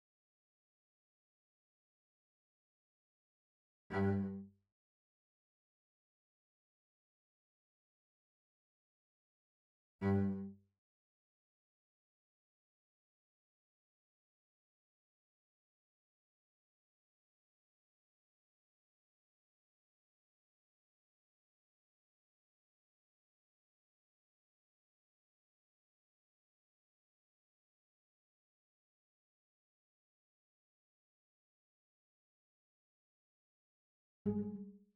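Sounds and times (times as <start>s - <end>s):
cello: 3.9s - 4.6s, 10.0s - 10.7s, 34.3s - 34.9s.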